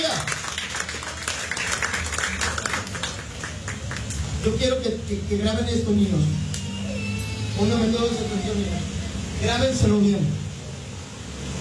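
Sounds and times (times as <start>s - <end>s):
crowd clapping loudly: 0.0s - 4.6s
speech: 4.4s - 6.5s, 7.6s - 10.4s.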